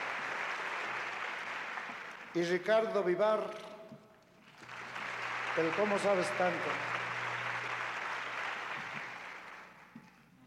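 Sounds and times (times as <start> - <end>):
audience applause: 0.0 - 2.7, 4.4 - 10.2
speech: 2.3 - 3.6, 5.6 - 6.9.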